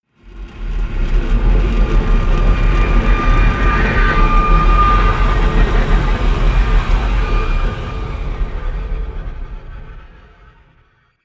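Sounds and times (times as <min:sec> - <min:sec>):
large spaceship grinding: 0:00.3 - 0:10.2.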